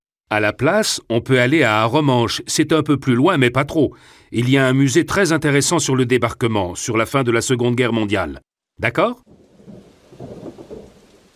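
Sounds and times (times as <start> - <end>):
speech: 0.3 - 9.4
low rumbles of thunder: 9.2 - 11.3
rain falling during a thunderstorm: 9.2 - 11.3.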